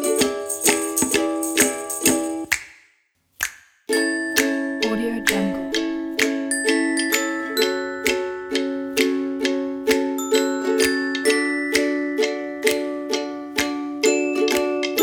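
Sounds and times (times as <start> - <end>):
acoustic indie pop music: 0.0 - 2.4, 4.0 - 15.0.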